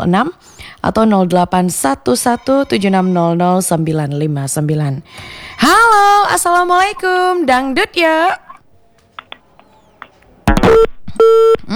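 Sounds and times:
speech: 0.0 - 8.4, 11.2 - 11.7
telephone line cutting off during a radio call-in: 10.5 - 11.7.

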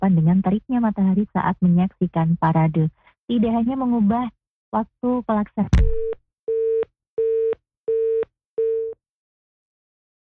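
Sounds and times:
speech: 0.0 - 6.2
telephone busy tone after dropped call: 6.0 - 9.0.

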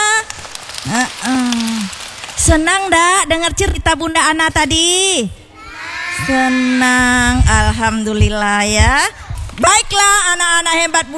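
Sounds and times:
young voices calling out in drawn-out rising cries: 0.0 - 2.5, 5.4 - 11.0
group of children clapping hands: 0.0 - 3.2, 5.6 - 7.6
speech: 0.8 - 1.4, 2.4 - 5.4, 6.2 - 11.1.

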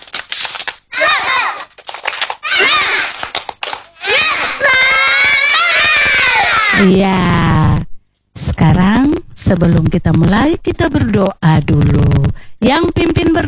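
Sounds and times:
group of children clapping in a rhythmic pattern: 0.0 - 6.8
children chanting and shouting: 0.9 - 1.7, 2.4 - 3.2, 4.0 - 6.8
speech: 6.8 - 7.5, 8.5 - 13.4.

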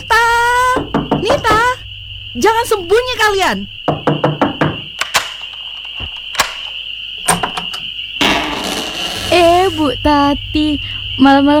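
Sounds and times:
house door pounded roughly: 0.0 - 1.8, 3.8 - 9.8
speech: 2.4 - 3.8, 9.8 - 11.5.

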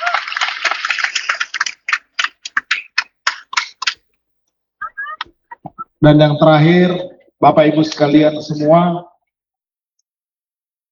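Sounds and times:
crowd applause: 0.0 - 3.9
speech: 6.0 - 9.1.

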